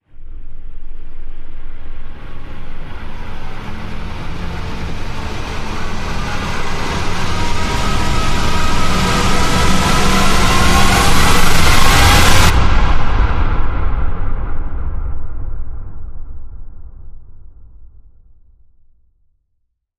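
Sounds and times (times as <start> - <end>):
riser sweep: 0.2 - 14.8.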